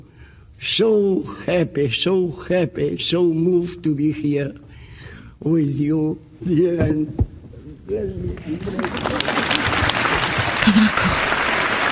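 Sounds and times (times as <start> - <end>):
speech: 0.6 - 4.6, 5.4 - 7.2, 7.9 - 9.4
strong audience applause: 8.4 - 11.9.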